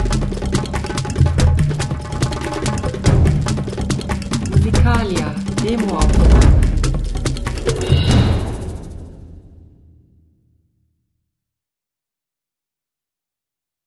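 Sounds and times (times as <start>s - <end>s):
drum song: 0.0s - 9.4s.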